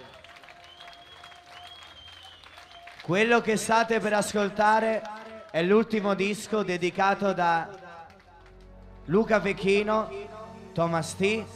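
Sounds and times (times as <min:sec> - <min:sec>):
audience applause: 0:00.0 - 0:09.0
speech: 0:03.1 - 0:07.8, 0:09.1 - 0:11.5.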